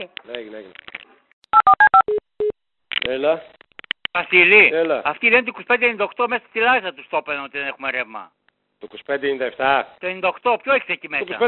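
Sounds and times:
speech: 0.0 - 0.9, 3.0 - 3.6, 4.2 - 11.4
telephone keypad dialing tones: 1.6 - 2.5.

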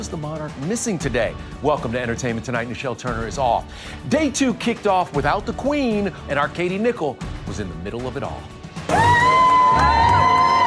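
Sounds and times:
speech: 0.0 - 9.0
crowd cheering: 8.9 - 10.6.

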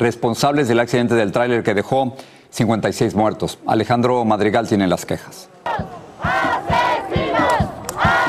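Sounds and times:
speech: 0.0 - 6.4
crowd of migrant protesters shouting a chant in unison: 5.6 - 8.2.

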